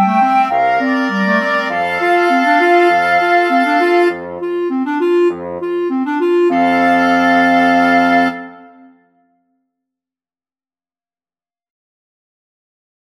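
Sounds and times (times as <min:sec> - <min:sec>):
wind quartet playing: 0:00.0 - 0:08.9.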